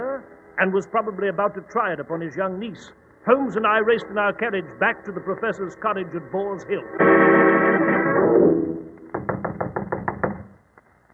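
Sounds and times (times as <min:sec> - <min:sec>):
speech: 0:00.6 - 0:08.9
knocking on a wooden cottage door: 0:09.1 - 0:10.6.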